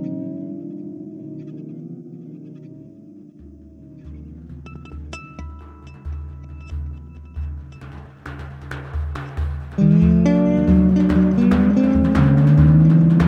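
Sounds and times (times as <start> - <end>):
dastgah music: 3.4 - 13.2.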